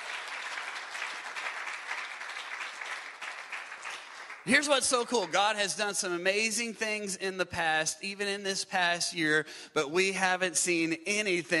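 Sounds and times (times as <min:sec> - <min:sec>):
crowd applauding: 0:00.0 - 0:05.4
speech: 0:04.4 - 0:11.5.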